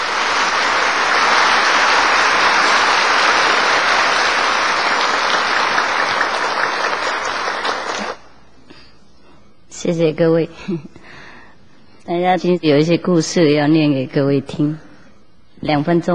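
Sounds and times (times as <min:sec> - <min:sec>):
warm audience applause: 0:00.0 - 0:08.3
speech: 0:09.8 - 0:11.0, 0:12.1 - 0:14.8, 0:15.6 - 0:16.1.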